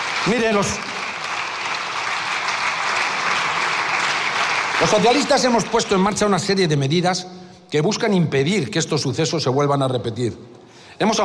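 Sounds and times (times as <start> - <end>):
crowd applause: 0.0 - 6.0
speech: 0.2 - 0.9, 4.8 - 11.2.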